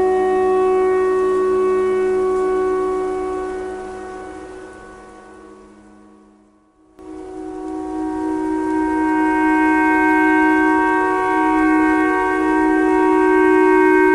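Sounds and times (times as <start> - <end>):
simple clarinet imitating a tornado siren: 0.0 - 6.4, 7.0 - 14.1.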